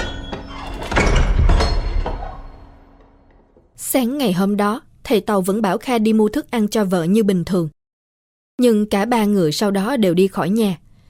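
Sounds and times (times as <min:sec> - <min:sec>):
creaky stuck door gently closing: 0:00.0 - 0:03.7
speech: 0:03.9 - 0:07.8, 0:08.6 - 0:10.8.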